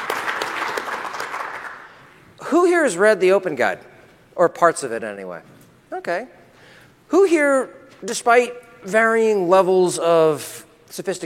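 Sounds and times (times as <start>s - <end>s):
audience applause: 0.0s - 2.1s
speech: 2.5s - 6.4s, 7.1s - 11.2s.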